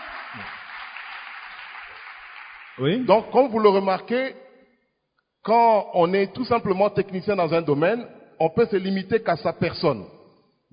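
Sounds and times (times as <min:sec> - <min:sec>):
audience applause: 0:00.0 - 0:03.0
speech: 0:02.8 - 0:04.4, 0:05.4 - 0:10.7.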